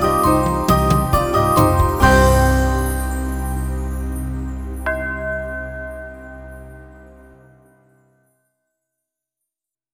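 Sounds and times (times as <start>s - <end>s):
Ukrainian bell carol: 0.0s - 7.8s.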